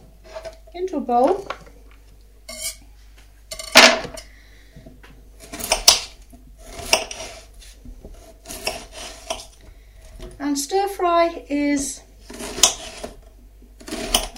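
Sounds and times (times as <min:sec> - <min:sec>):
speech: 0:00.9 - 0:01.5, 0:10.7 - 0:12.1
knife chopping onions into bite-sized pieces for a stir fry: 0:05.4 - 0:07.5, 0:08.1 - 0:09.5, 0:11.7 - 0:14.3.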